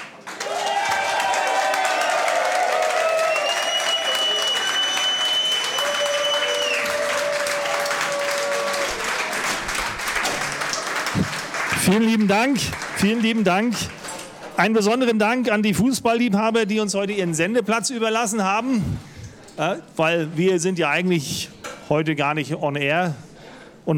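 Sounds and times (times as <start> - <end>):
audience applause: 0.0 - 14.2
speech: 11.9 - 14.0, 14.6 - 23.3.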